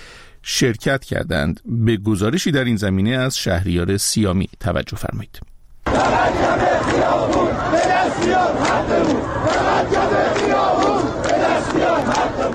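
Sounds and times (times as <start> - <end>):
speech: 0.5 - 10.8
crowd chanting at a street protest: 5.9 - 12.5.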